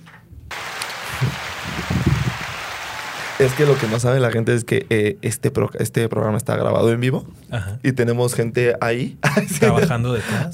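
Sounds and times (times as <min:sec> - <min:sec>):
applause: 0:00.5 - 0:04.2
speech: 0:03.4 - 0:10.5.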